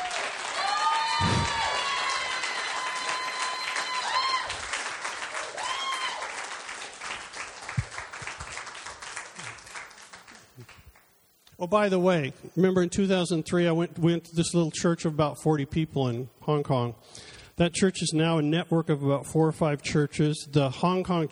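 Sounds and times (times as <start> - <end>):
audience applause: 0.0 - 11.0
speech: 11.6 - 21.2.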